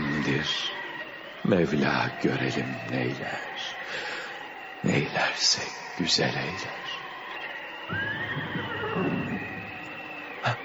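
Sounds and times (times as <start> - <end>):
speech: 0.2 - 0.8, 1.4 - 4.1, 4.8 - 6.9, 7.9 - 8.2
white horse neighing: 8.0 - 9.6.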